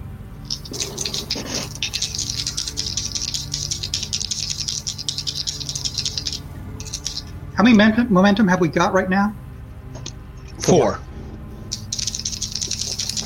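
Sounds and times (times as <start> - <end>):
low hum: 0.0 - 13.2
dice rattling: 0.5 - 7.3, 11.7 - 13.2
speech: 7.6 - 9.4, 10.7 - 11.1.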